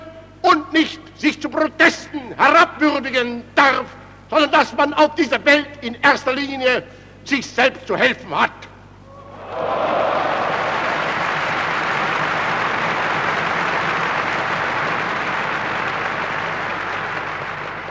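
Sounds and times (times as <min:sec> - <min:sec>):
speech: 0:00.7 - 0:08.6
crowd applause: 0:09.4 - 0:17.8.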